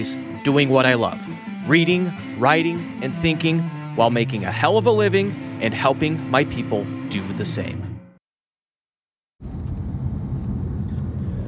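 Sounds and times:
speech: 0.0 - 7.9
car being driven: 9.4 - 11.4.

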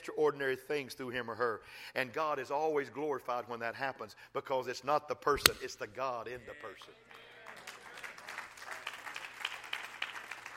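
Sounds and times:
speech: 0.0 - 7.3
audience clapping: 6.8 - 10.5.

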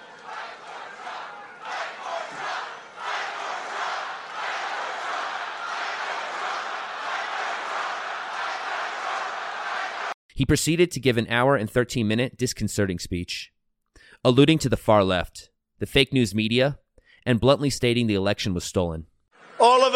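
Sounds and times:
large crowd cheering and shouting at a Trump speech: 0.0 - 10.2
speech: 10.4 - 13.6, 14.2 - 19.9.

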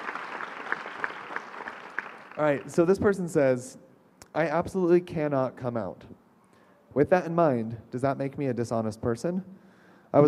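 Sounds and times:
audience applause: 0.0 - 2.9
speech: 2.4 - 6.2, 6.9 - 10.2.

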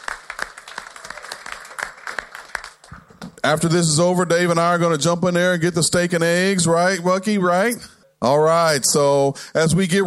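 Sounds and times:
audience applause for staff: 0.0 - 3.0
speech: 3.4 - 10.0.

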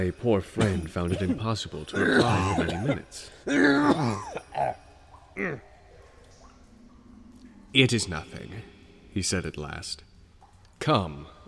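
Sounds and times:
speech: 0.0 - 4.8, 5.4 - 5.7, 7.7 - 10.1, 10.8 - 11.4
coughing fit: 0.6 - 4.8.

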